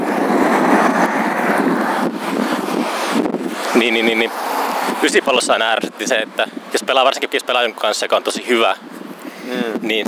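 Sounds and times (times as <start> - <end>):
electric scooter passing by: 0.0 - 5.1
speech: 3.8 - 8.9, 9.5 - 10.0.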